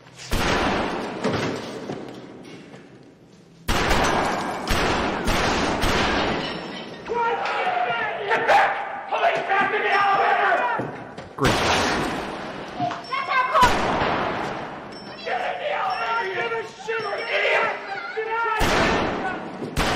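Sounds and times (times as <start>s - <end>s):
movie gunfight gunshots: 0.3s - 1.5s, 3.7s - 6.7s, 11.4s - 12.7s, 13.6s - 14.8s, 18.6s - 19.9s
shouting voices: 7.0s - 11.0s, 15.1s - 19.6s.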